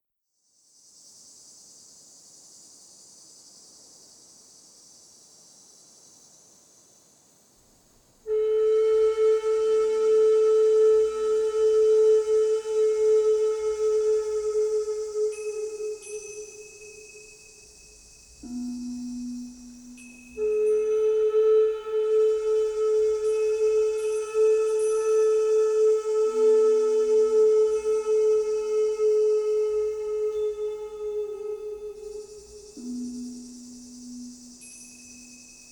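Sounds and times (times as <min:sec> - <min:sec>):
crickets chirping: 0:00.5 - 0:35.6
flute: 0:08.3 - 0:35.6.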